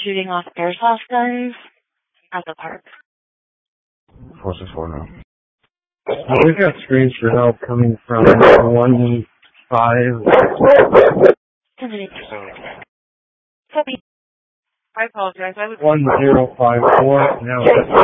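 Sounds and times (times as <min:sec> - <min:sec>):
speech: 0:00.0 - 0:01.7, 0:02.3 - 0:03.0, 0:04.4 - 0:05.2, 0:06.1 - 0:12.7, 0:13.8 - 0:14.0, 0:15.0 - 0:18.0
dog barking and yipping over a police dispatch radio: 0:08.1 - 0:09.1, 0:10.2 - 0:11.4, 0:15.8 - 0:18.0.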